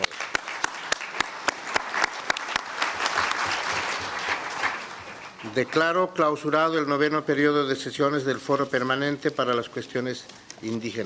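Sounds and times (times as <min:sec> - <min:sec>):
audience applause: 0:00.0 - 0:06.0
speech: 0:05.5 - 0:11.0.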